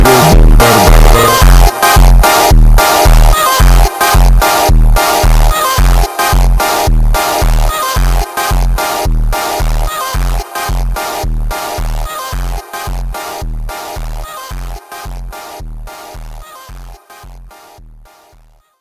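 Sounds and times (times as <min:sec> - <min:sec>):
slowed funk music: 0:00.0 - 0:14.3.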